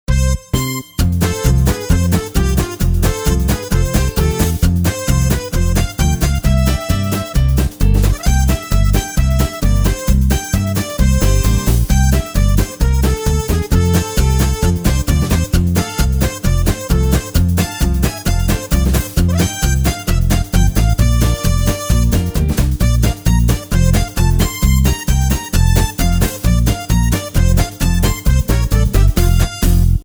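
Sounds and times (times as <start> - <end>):
jingle: 0.1 - 30.0.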